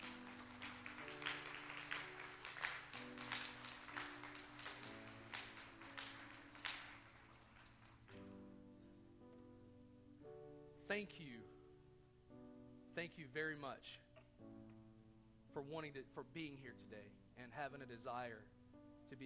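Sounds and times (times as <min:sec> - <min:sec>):
audience applause: 0:00.0 - 0:08.2
speech: 0:10.9 - 0:11.6, 0:13.0 - 0:14.6, 0:15.6 - 0:19.2.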